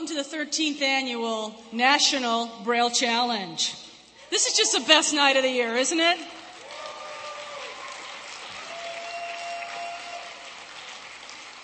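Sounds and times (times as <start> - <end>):
speech: 0.2 - 6.4
large audience clapping and cheering: 6.4 - 11.6.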